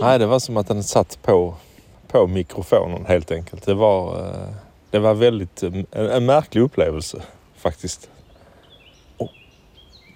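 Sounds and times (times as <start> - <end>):
speech: 0.0 - 8.2, 9.2 - 9.4
woodpecker: 8.2 - 10.1.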